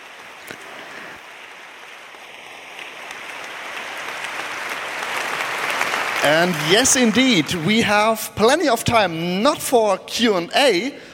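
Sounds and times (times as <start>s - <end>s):
audience applause for two presenters: 0.0s - 8.6s
speech: 6.2s - 11.0s.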